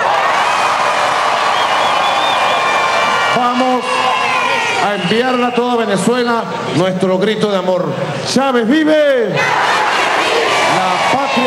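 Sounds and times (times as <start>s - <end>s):
large crowd cheering and applauding: 0.0s - 6.0s, 9.4s - 11.4s
high whistles: 1.4s - 3.0s, 4.0s - 5.9s
speech: 3.4s - 3.9s, 4.8s - 9.9s.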